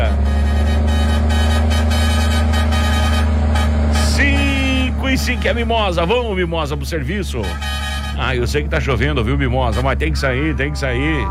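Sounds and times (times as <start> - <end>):
old cargo truck with open exhaust: 0.0 - 11.2
speech: 5.3 - 11.2.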